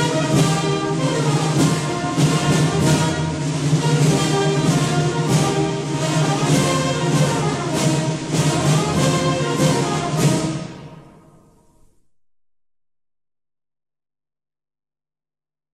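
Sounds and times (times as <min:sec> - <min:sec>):
march music: 0:00.0 - 0:12.1.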